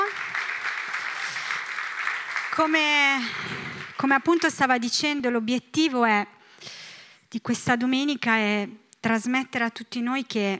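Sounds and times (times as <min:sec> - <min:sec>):
audience applause: 0:00.0 - 0:04.0
speech: 0:02.6 - 0:10.5.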